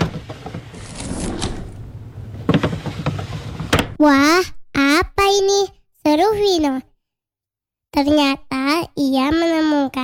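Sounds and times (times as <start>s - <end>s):
desk drawers sliding open: 0.5s - 4.0s
speech: 4.0s - 6.9s, 7.9s - 10.0s.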